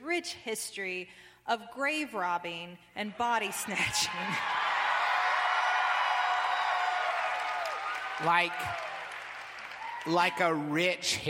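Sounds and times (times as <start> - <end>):
speech: 0.2 - 4.7, 8.2 - 8.9, 10.0 - 11.2
audience cheering: 3.4 - 10.9.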